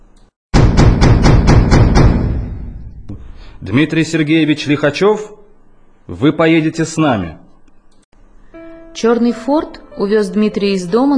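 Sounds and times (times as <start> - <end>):
loud knock on apartment door: 0.5 - 3.0
speech: 3.7 - 5.4, 6.1 - 7.4, 9.0 - 11.1.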